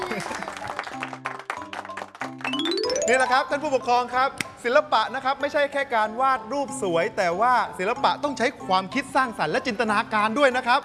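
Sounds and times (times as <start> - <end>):
audience applause for a child's drawing at a children's art session: 0.0 - 2.9
speech: 3.1 - 10.8.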